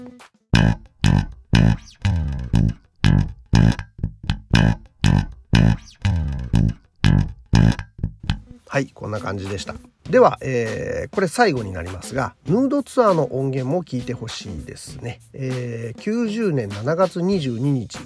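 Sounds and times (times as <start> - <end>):
speech: 0.0 - 0.9, 8.8 - 18.0
bass guitar line with gritty effected tone: 0.6 - 8.6.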